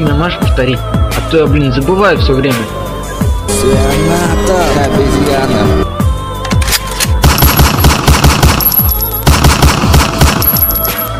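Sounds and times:
speech: 0:00.0 - 0:02.9, 0:03.5 - 0:05.9
automatic rifle burst of gunfire: 0:07.2 - 0:11.1.

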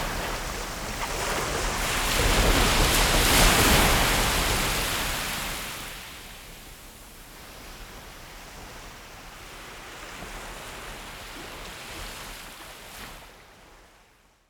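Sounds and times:
sea surf: 0:00.0 - 0:06.2.

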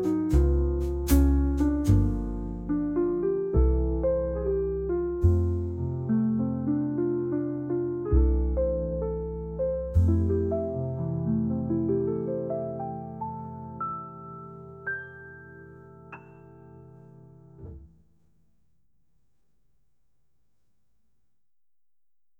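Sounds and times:
smooth jazz: 0:00.0 - 0:15.4.

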